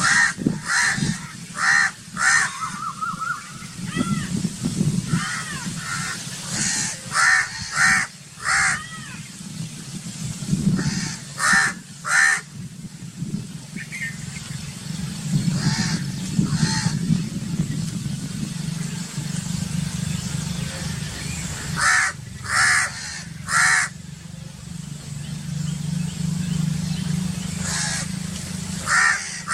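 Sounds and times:
crow cawing: 0:00.0 - 0:04.4, 0:05.1 - 0:09.2, 0:10.8 - 0:12.5, 0:15.6 - 0:17.0, 0:21.8 - 0:24.0, 0:27.6 - 0:28.1, 0:28.9 - 0:29.5
calm bird ambience: 0:00.0 - 0:29.5.

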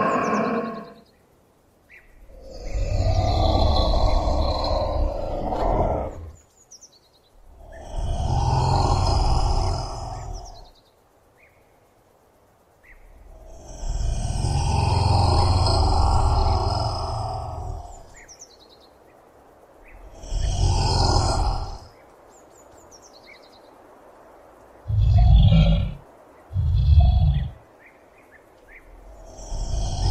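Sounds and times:
Komodo dragon: 0:00.0 - 0:01.0, 0:02.2 - 0:06.4, 0:07.4 - 0:10.7, 0:13.1 - 0:18.2, 0:19.8 - 0:21.9, 0:24.8 - 0:27.6, 0:28.8 - 0:30.1.

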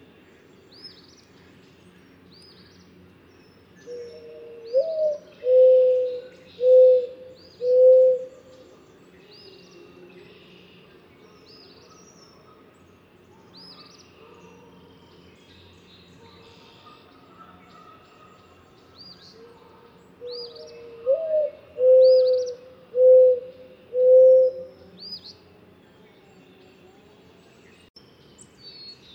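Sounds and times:
mourning dove cooing: 0:03.8 - 0:08.8, 0:16.3 - 0:25.4.

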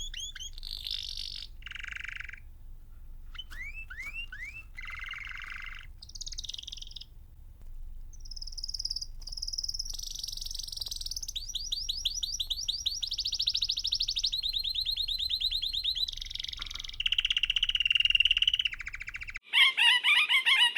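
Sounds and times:
parakeet calls: 0:00.0 - 0:02.5, 0:03.3 - 0:07.1, 0:08.1 - 0:20.6.

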